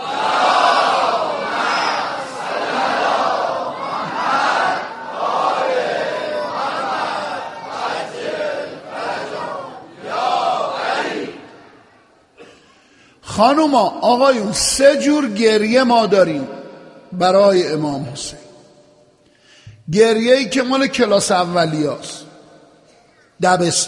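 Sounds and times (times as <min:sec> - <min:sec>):
crowd reciting salawat in unison: 0:00.0 - 0:12.6
speech: 0:13.4 - 0:18.4, 0:19.9 - 0:22.3, 0:23.4 - 0:23.8.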